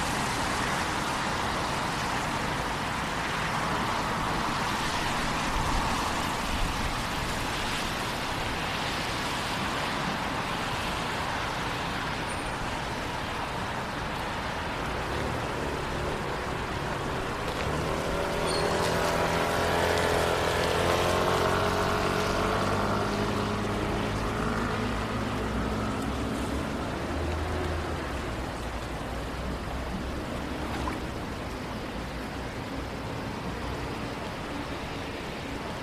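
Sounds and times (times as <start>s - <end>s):
rain downtown at night: 0.0s - 35.8s
vehicle passing on wet road: 15.1s - 31.6s.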